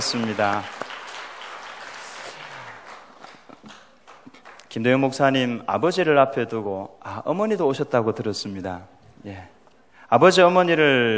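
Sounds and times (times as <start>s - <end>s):
speech: 0.0s - 0.9s, 4.7s - 11.1s
audience applause: 0.0s - 4.7s.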